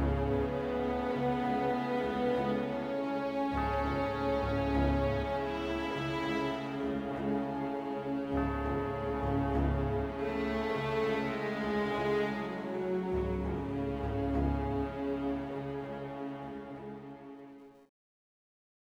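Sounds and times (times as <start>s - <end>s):
slow air music: 0.0s - 17.8s.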